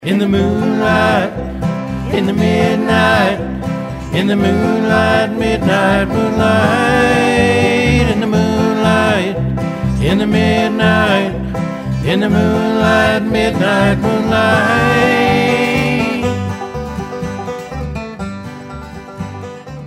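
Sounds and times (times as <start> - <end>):
country band playing: 0.0 - 19.8.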